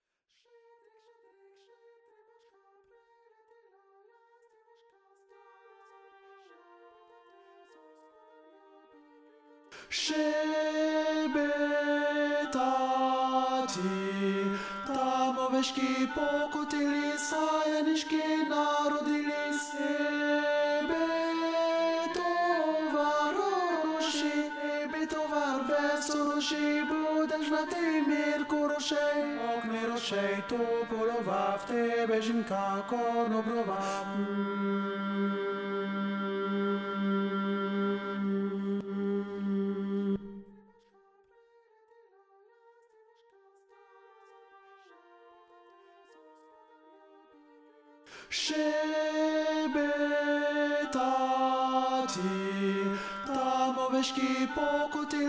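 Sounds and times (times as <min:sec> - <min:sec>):
tenor singing: 0:09.7 - 0:40.4, 0:48.1 - 0:55.2.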